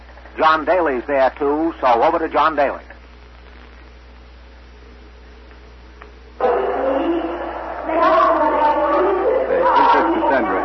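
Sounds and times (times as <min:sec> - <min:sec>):
speech: 0:00.4 - 0:02.9
large crowd gathering in market square: 0:06.4 - 0:10.6.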